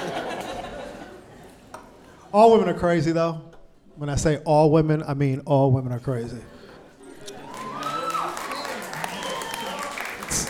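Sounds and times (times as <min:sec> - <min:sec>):
laughter: 0:00.0 - 0:01.6
speech: 0:02.3 - 0:06.6
audience clapping: 0:07.4 - 0:10.4.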